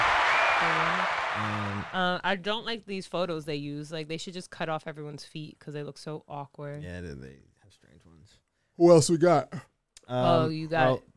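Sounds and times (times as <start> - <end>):
crowd applauding: 0.0 - 2.0
speech: 0.6 - 7.5, 8.8 - 11.1.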